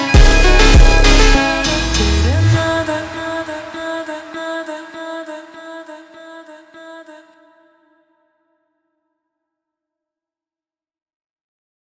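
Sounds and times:
super slowed funk music: 0.0s - 3.2s.

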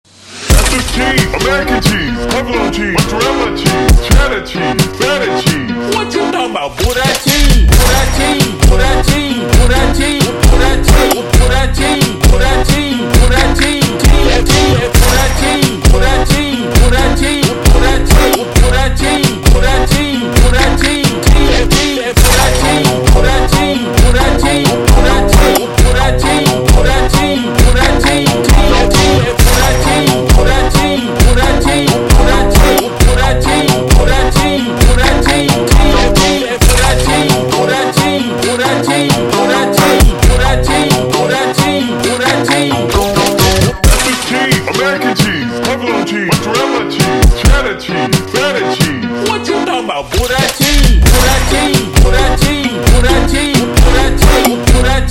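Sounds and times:
slowed brega music: 0.1s - 55.0s.

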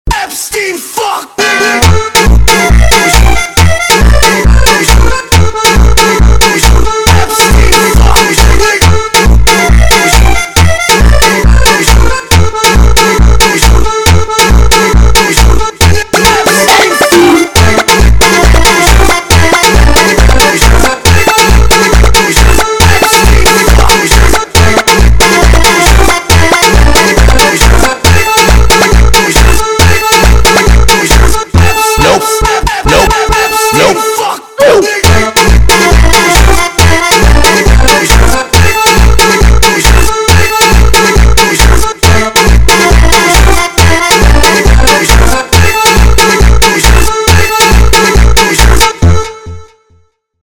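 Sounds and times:
sped up funk music: 1.4s - 49.9s.

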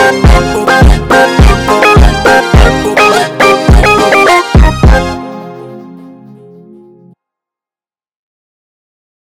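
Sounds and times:
slowed funk music: 0.0s - 7.2s.

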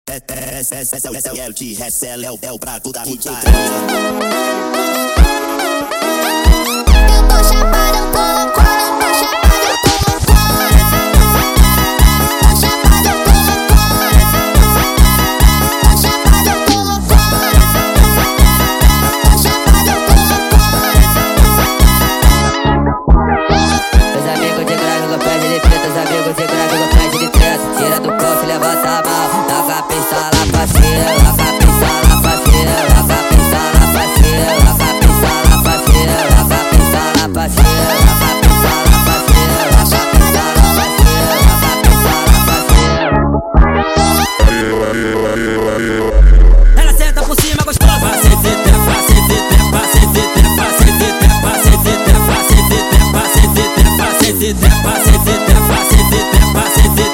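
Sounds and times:
sped up funk music: 3.4s - 57.1s.

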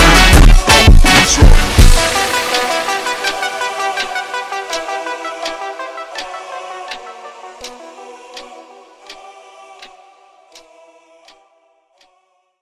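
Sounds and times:
ultra slowed funk music: 0.0s - 8.6s.

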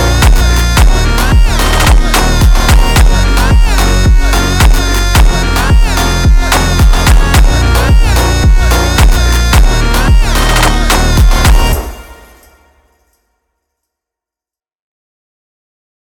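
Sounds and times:
slowed funk music: 0.0s - 12.5s.

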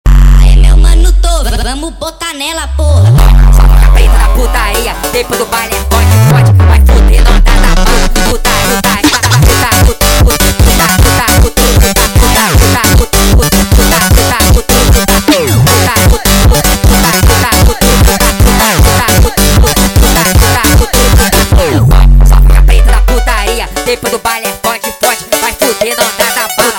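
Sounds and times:
sped-up phonk music: 0.1s - 26.7s.

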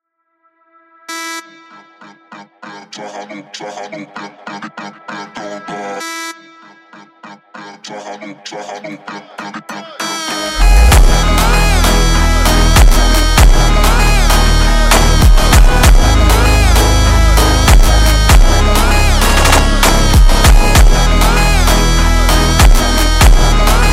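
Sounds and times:
super slowed funk music: 10.6s - 23.9s.

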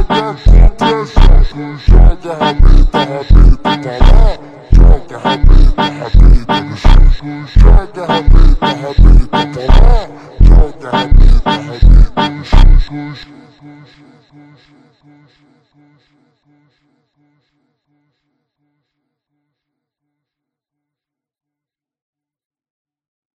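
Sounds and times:
super slowed funk music: 0.0s - 12.8s.

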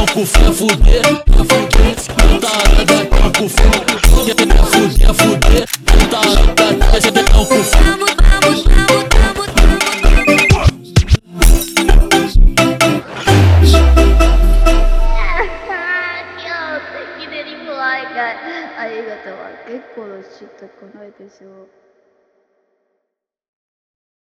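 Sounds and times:
funk music: 0.0s - 16.0s.

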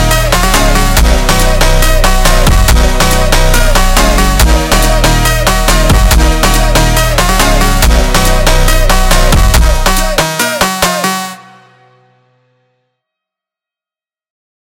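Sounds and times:
sped up funk music: 0.0s - 11.6s.

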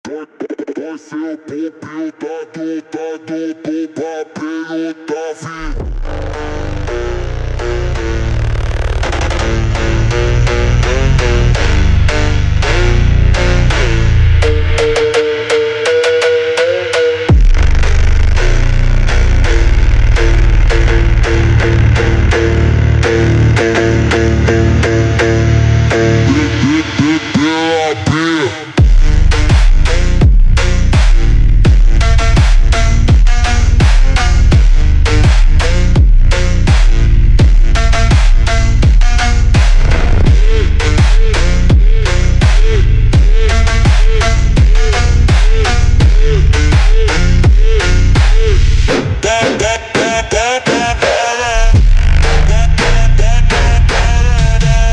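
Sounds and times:
funk music: 6.0s - 54.9s.

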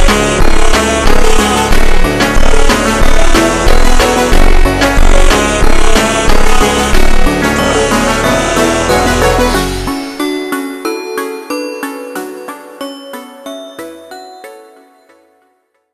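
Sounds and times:
slowed funk music: 0.0s - 10.4s.

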